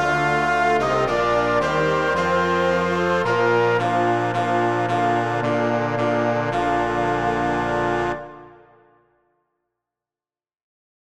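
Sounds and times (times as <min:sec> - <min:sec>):
orchestra playing an intrada: 0:00.0 - 0:08.8.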